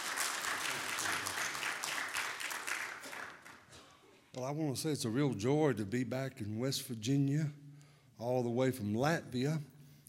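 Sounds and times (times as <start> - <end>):
Baptist church congregation at Maranatha Baptist Church in West Virginia applauding: 0.0 - 3.8
speech: 4.4 - 7.6, 8.2 - 9.7.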